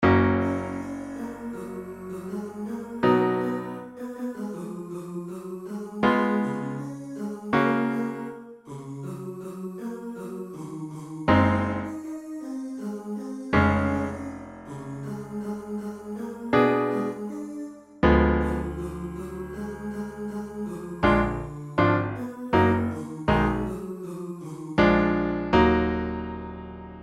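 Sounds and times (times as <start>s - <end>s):
piano: 0.0s - 4.0s, 6.0s - 6.8s, 7.6s - 8.4s, 11.3s - 12.0s, 13.6s - 17.4s, 18.0s - 23.9s, 24.8s - 27.0s.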